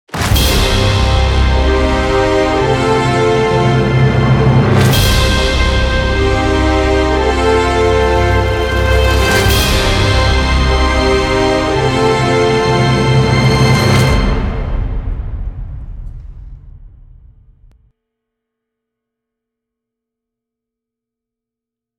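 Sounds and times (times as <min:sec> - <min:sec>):
big win music loop: 0:00.2 - 0:15.1.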